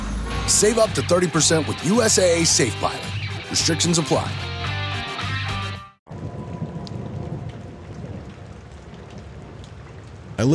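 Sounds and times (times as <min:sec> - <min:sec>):
short burst of music: 0:00.0 - 0:06.0
speech: 0:00.5 - 0:04.6, 0:10.4 - 0:10.5
steady rain: 0:06.1 - 0:10.5.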